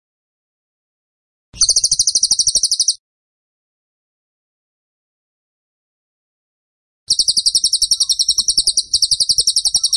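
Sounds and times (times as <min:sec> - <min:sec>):
tembakan bird trilling: 0:01.6 - 0:03.0, 0:07.1 - 0:09.9.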